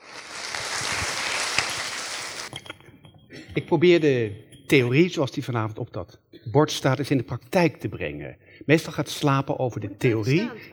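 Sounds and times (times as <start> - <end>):
warm applause from audience: 0.0 - 2.5
speech: 3.6 - 10.7.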